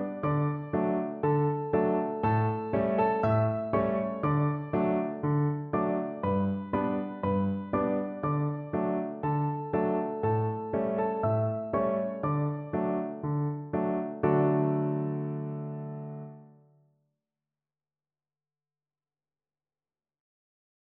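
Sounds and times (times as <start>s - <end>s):
piano duet of a classical piece: 0.0s - 16.6s.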